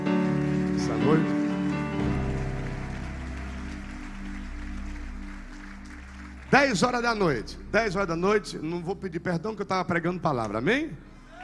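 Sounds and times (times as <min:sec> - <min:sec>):
audience applauding: 0:00.0 - 0:08.2
sustained keyboard chords: 0:00.0 - 0:11.2
speech: 0:01.0 - 0:01.4, 0:06.5 - 0:11.1.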